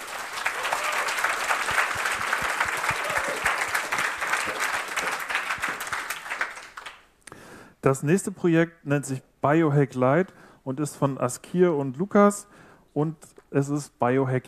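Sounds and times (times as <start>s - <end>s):
audience applause: 0.0s - 7.0s
speech: 7.8s - 14.4s.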